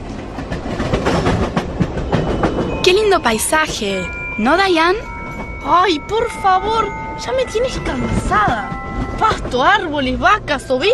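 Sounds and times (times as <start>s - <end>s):
train travelling on rails: 0.0s - 10.9s
speech: 2.8s - 10.9s.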